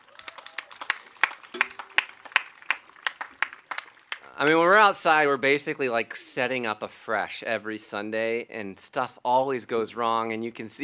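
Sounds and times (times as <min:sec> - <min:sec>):
round of applause: 0:00.0 - 0:04.9
speech: 0:04.4 - 0:10.8.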